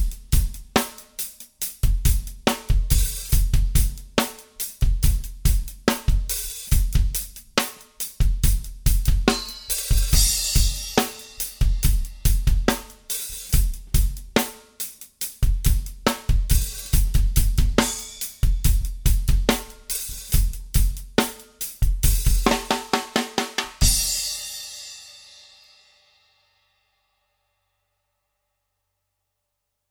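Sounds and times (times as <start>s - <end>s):
hip hop drum beat on a drum kit: 0.0s - 24.7s.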